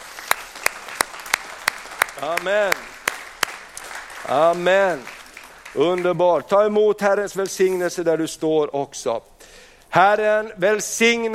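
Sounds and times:
audience applause: 0:00.0 - 0:06.4
speech: 0:02.2 - 0:02.9, 0:04.3 - 0:09.3, 0:09.9 - 0:11.3.

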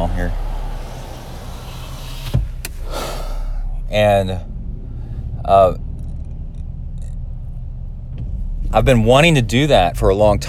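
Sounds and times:
speech: 0:00.1 - 0:00.5, 0:03.9 - 0:04.5, 0:05.5 - 0:05.8, 0:08.7 - 0:10.4
car power window rolling down: 0:00.4 - 0:03.0.

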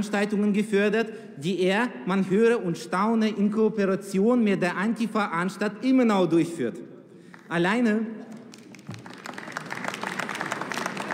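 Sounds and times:
speech: 0:00.0 - 0:06.9, 0:07.5 - 0:08.2
parliament members clapping: 0:07.2 - 0:07.6, 0:08.2 - 0:11.1.

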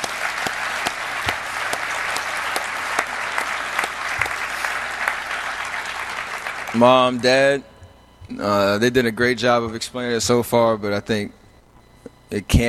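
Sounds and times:
audience applause: 0:00.0 - 0:07.3
speech: 0:06.8 - 0:07.7, 0:08.3 - 0:11.4, 0:12.3 - 0:12.6.

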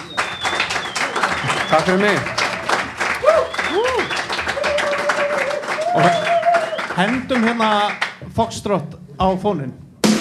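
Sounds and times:
people whooping: 0:00.0 - 0:06.9
audience clapping for a guest: 0:00.0 - 0:08.2
speech: 0:01.7 - 0:02.4, 0:06.0 - 0:06.2, 0:07.0 - 0:09.8.

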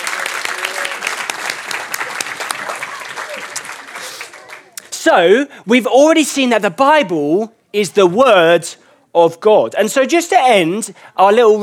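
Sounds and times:
audience applause: 0:00.0 - 0:04.8
speech: 0:05.0 - 0:11.6.

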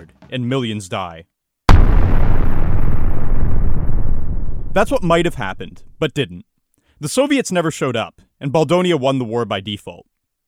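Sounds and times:
speech: 0:00.0 - 0:01.3, 0:04.7 - 0:10.1
battle explosions rumbling: 0:01.7 - 0:06.1.

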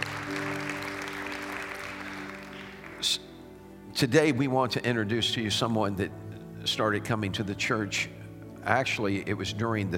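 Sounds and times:
audience hand clap of praise: 0:00.0 - 0:03.1
speech: 0:03.0 - 0:03.3, 0:04.0 - 0:09.9.

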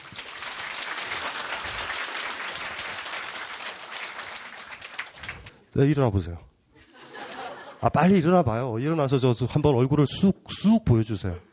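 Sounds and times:
audience applause: 0:00.0 - 0:05.7
speech: 0:05.8 - 0:06.5, 0:07.8 - 0:11.5
laughter: 0:06.8 - 0:08.1.

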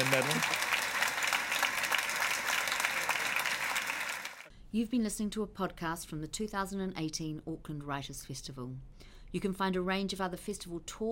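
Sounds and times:
round of applause: 0:00.0 - 0:04.5
speech: 0:04.7 - 0:11.1.

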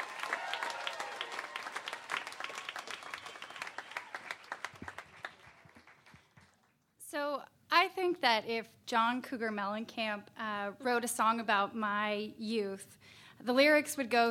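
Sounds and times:
round of applause from an audience: 0:00.0 - 0:06.8
speech: 0:08.2 - 0:14.2.

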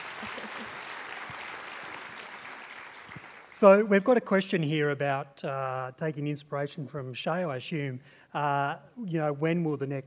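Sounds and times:
audience clapping: 0:00.0 - 0:03.8
speech: 0:00.2 - 0:00.9, 0:03.6 - 0:10.0.

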